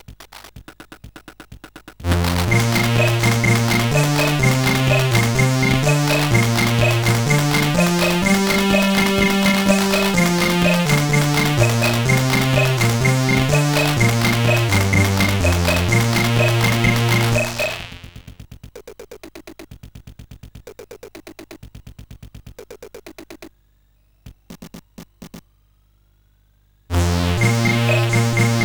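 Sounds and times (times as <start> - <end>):
traditional tune on CSG8580R5 chip: 2.1 - 18.0, 27.0 - 28.6.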